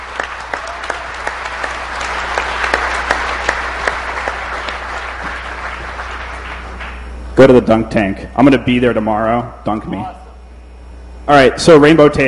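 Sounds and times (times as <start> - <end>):
audience applause: 0.0 - 7.1
speech: 7.4 - 10.2, 11.3 - 12.2.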